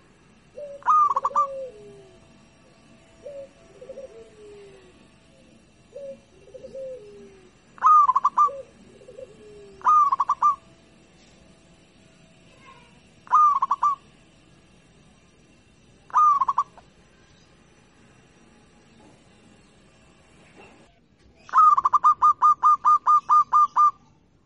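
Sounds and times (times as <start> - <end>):
zebra dove singing in stuttering bursts of rapid cooing notes: 0.4 - 10.8, 13.2 - 14.0, 16.1 - 16.9, 21.4 - 24.1.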